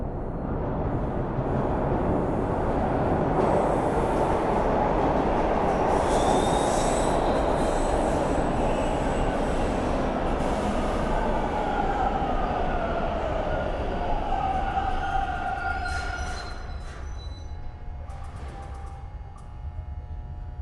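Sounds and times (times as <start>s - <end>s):
metro train arriving and departing at a Toronto station platform: 0.1s - 19.9s
electrical buzz at a metro station platform in Toronto Canada: 17.5s - 20.6s.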